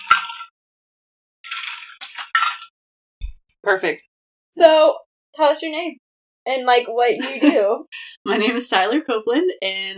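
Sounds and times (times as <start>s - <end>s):
drinking from a plastic water bottle: 1.5s - 2.7s
speech: 3.7s - 9.9s.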